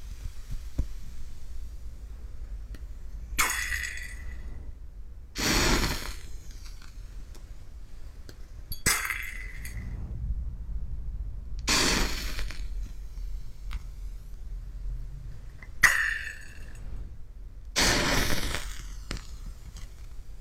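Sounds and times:
low steady hum: 0.0 - 20.4
beakers and test tubes clinking and rattling: 8.7 - 9.8.

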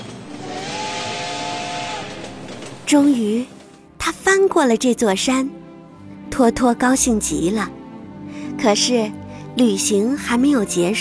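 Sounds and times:
small steam train whistle: 0.3 - 2.5
speech: 2.9 - 3.6, 4.3 - 5.6, 6.3 - 7.8, 8.6 - 10.9.

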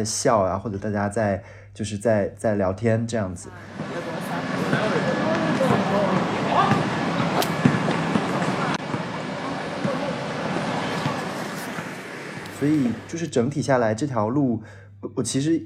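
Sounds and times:
speech: 0.0 - 4.0, 12.6 - 15.6
players running in an alley: 3.6 - 13.2
basketball bouncing on the ground: 3.7 - 13.1.

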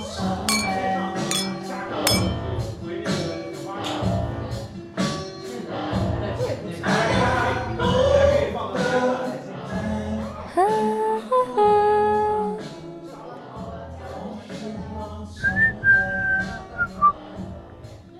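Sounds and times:
glasses clinking in a toast: 0.0 - 2.7
murmur of voices in a bar: 0.0 - 18.1.

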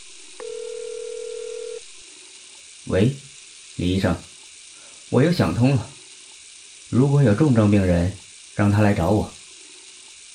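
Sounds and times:
hiss: 0.0 - 10.3
telephone tone: 0.4 - 1.9
speech: 2.9 - 4.3, 5.1 - 6.0, 6.9 - 9.4.

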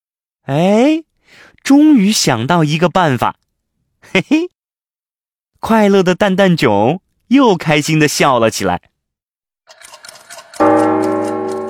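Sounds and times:
speech: 0.5 - 3.4, 4.0 - 4.6, 5.6 - 8.9
big clock on a snowy mountain striking: 10.6 - 11.6.

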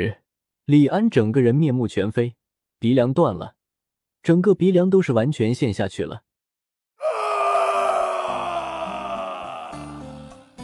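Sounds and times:
speech: 0.0 - 3.6, 4.2 - 6.2
man roaring in pain: 7.0 - 10.6.

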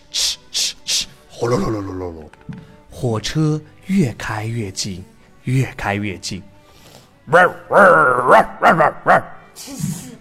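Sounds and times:
speech: 1.4 - 6.5, 7.3 - 10.0
hunting dog barking and yelping: 7.3 - 9.4.

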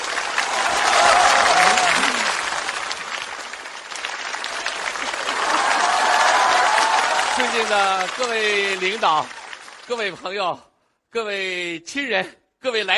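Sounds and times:
audience applause: 0.0 - 10.5
speech: 7.6 - 12.9.

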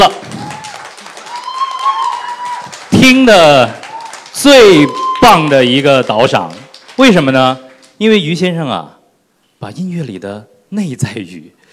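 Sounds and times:
speech: 0.0 - 0.4, 3.0 - 3.8, 4.4 - 9.0, 9.6 - 11.6
audience applause: 0.0 - 8.0.

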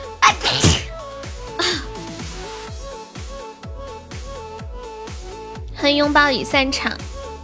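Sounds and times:
speech: 0.3 - 0.8, 5.8 - 7.0
sneeze: 0.3 - 1.0.

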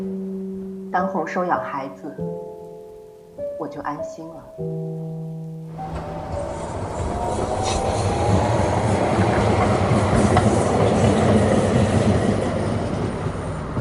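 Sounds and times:
speech: 0.9 - 2.6, 3.4 - 6.1
subway train rushing past in tunnel: 5.7 - 13.8.

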